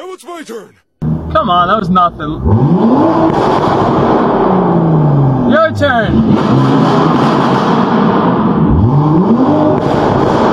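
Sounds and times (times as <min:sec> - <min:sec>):
speech: 0:00.1 - 0:08.1
car engine revving hard in a rev bomb: 0:02.4 - 0:05.5, 0:06.1 - 0:10.4.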